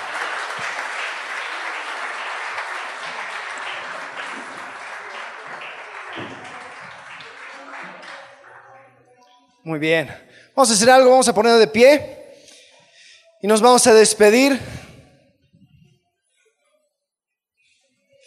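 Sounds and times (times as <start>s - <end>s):
audience applause: 0.0s - 8.8s
speech: 9.7s - 12.2s, 13.4s - 14.7s.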